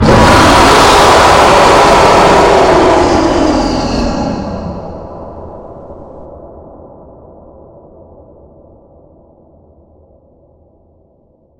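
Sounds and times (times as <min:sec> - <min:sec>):
screamer: 0:00.0 - 0:05.5.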